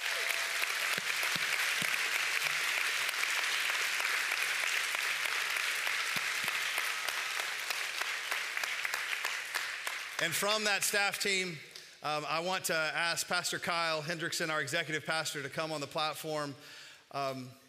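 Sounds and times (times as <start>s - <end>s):
audience applause: 0.0s - 10.3s
speech: 10.2s - 17.6s.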